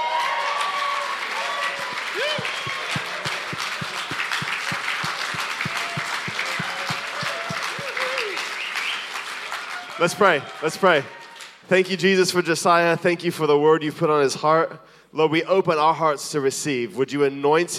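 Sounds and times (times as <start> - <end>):
scattered cheers and whoops from the congregation: 0.0 - 11.4
congregation applauding to welcome a preacher: 0.0 - 11.6
regular low thumping beat: 1.8 - 8.0
speech: 10.0 - 17.7.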